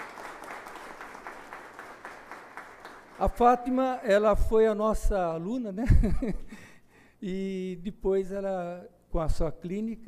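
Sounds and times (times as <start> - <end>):
audience applause: 0.0 - 3.4
speech: 3.2 - 6.6, 7.2 - 10.0.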